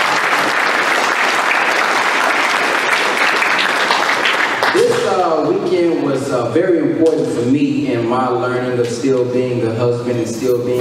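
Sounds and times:
large audience applause: 0.0 - 5.2
speech: 5.7 - 10.7.

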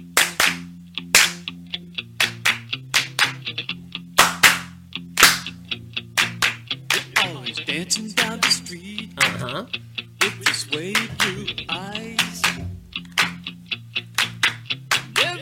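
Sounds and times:
sharp hand claps: 0.1 - 1.6, 2.2 - 3.6, 4.2 - 5.6, 6.2 - 7.6, 9.2 - 9.5, 10.2 - 15.3
speech: 7.8 - 12.3.

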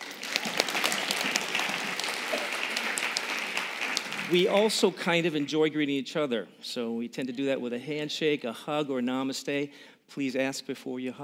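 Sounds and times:
church congregation applause during a Sunday service: 0.0 - 5.6
speech: 4.3 - 11.2.

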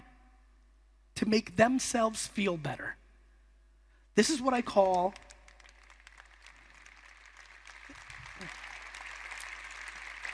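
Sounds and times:
speech: 1.2 - 3.0, 4.2 - 5.3
audience clapping: 4.6 - 10.3.

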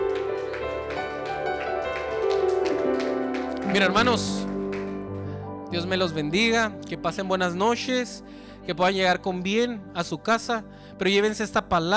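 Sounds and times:
audience applause: 0.0 - 5.3
speech: 3.7 - 4.4, 5.7 - 11.9.

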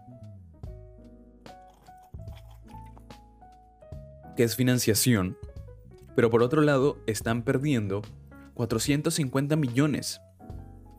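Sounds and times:
person drinking water: 1.6 - 3.2
speech: 4.4 - 5.5, 6.2 - 10.3.

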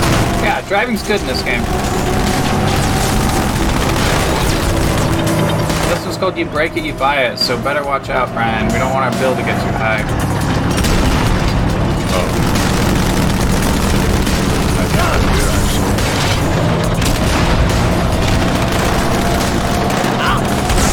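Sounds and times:
gunfire from ghost enemies in a video game: 0.0 - 6.2, 10.6 - 20.9
heavy booming explosions in a video game: 0.0 - 6.2, 10.1 - 20.9
speech: 0.6 - 2.7, 5.9 - 10.4.

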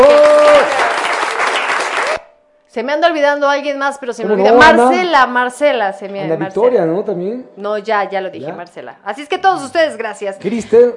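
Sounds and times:
applause: 0.0 - 2.3
speech: 2.8 - 10.9.

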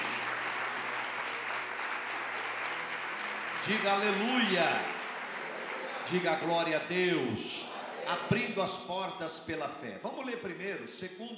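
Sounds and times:
audience applauding: 0.0 - 7.1
speech: 3.6 - 5.0, 6.1 - 11.3.

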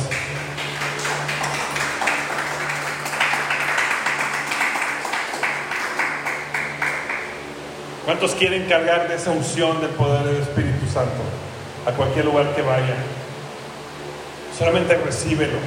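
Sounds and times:
audience applause: 0.0 - 7.6
speech: 8.1 - 13.2, 14.6 - 15.6.

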